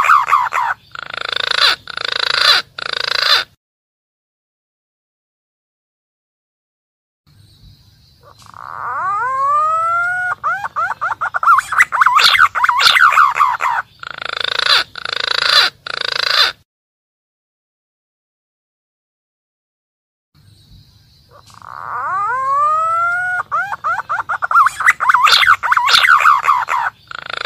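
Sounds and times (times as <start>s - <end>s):
green pigeon calling, used as a lure for wild birds: 0.0s - 3.6s, 8.2s - 16.6s, 21.3s - 27.4s.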